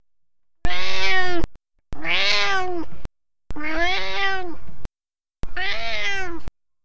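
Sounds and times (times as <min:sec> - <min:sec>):
domestic cat meowing: 0:00.7 - 0:02.9, 0:03.5 - 0:04.6, 0:05.4 - 0:06.5.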